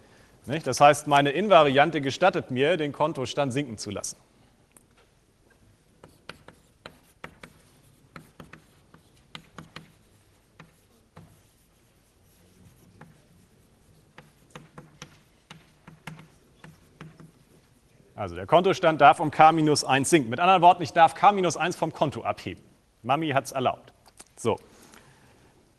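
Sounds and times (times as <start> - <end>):
speech: 0.5 - 4.3, 18.2 - 24.8
dots being written on a board: 6.0 - 10.0, 10.6 - 11.5, 14.1 - 17.5.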